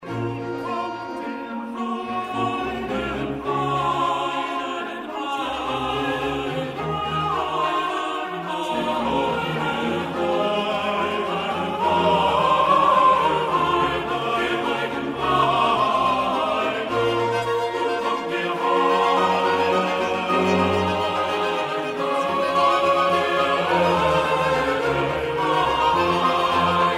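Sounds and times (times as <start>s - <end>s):
chorus singing: 0.0s - 26.9s.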